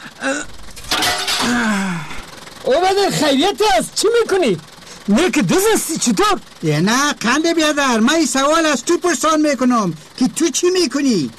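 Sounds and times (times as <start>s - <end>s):
speech: 0.2s - 0.5s, 2.7s - 11.3s
window glass smashing: 0.7s - 1.8s
gasping and groaning voices: 1.4s - 2.2s.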